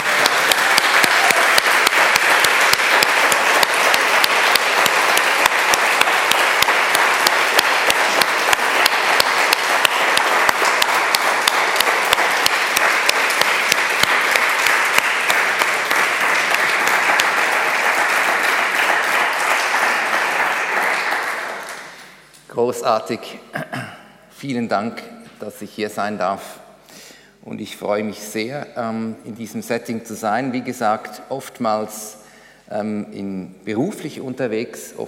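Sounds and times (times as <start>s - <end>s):
audience applause for the hosts: 0.0s - 22.1s
speech: 22.8s - 23.8s, 24.4s - 26.6s, 27.4s - 35.0s.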